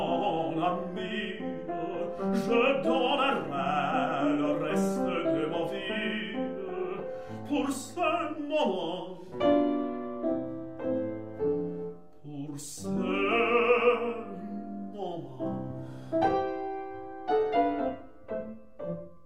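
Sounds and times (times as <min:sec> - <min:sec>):
person singing: 0:00.0 - 0:09.4, 0:12.2 - 0:15.8
piano: 0:00.0 - 0:19.2.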